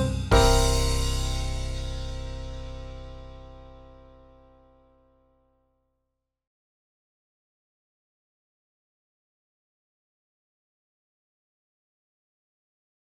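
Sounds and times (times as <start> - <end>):
backing track in C major at 160 bpm: 0.0 - 4.4.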